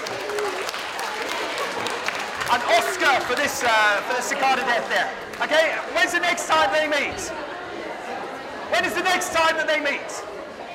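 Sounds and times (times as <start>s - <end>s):
small group clapping: 0.0s - 6.6s
speech: 2.5s - 7.5s, 8.8s - 10.3s.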